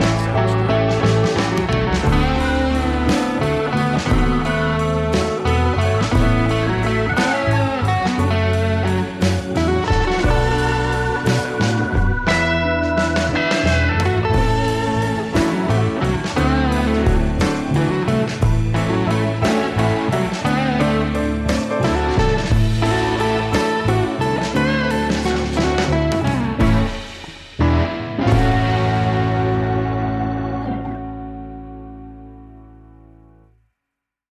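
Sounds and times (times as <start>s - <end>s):
blues instrumental bridge: 0.0s - 33.5s.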